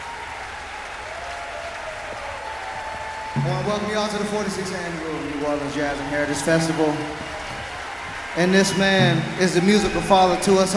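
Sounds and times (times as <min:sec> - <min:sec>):
audience applause for a jazz musician at a jazz festival: 0:00.0 - 0:10.7
speech: 0:03.4 - 0:07.3, 0:08.4 - 0:10.7.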